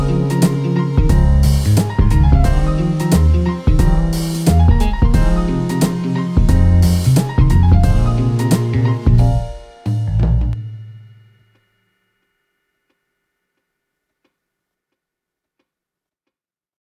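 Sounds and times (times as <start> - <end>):
jazz record: 0.0 - 11.0.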